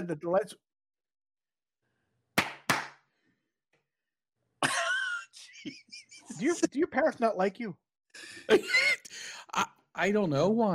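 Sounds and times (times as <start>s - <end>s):
speech: 0.0s - 0.7s, 5.6s - 10.7s
hand clapping to trigger a clap-activated light switch: 2.4s - 3.1s
laughter: 4.6s - 6.9s, 8.2s - 9.6s.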